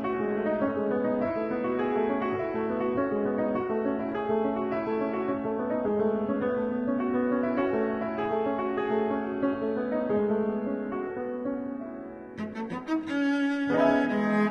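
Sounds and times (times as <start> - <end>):
cello in a duet with piano: 0.0 - 14.5
piano in a duet with cello: 0.0 - 14.5.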